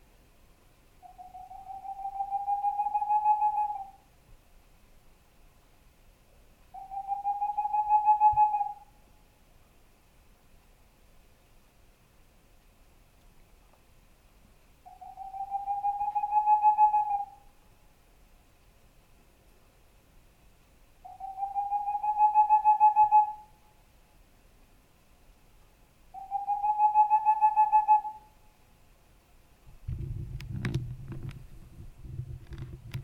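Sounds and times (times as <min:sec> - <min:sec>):
Tengmalm's owl in northern Forez: 0:01.0 - 0:04.1, 0:06.7 - 0:09.0, 0:14.8 - 0:17.6, 0:21.0 - 0:23.8, 0:26.1 - 0:28.5.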